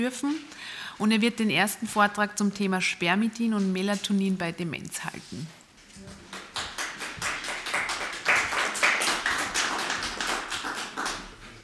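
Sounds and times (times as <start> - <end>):
speech: 0.0 - 6.2
audience clapping: 6.1 - 11.6.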